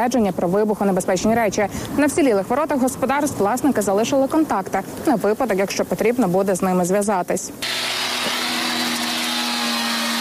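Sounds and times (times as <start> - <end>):
speech: 0.0 - 7.8
angle grinder cutting: 7.6 - 10.1.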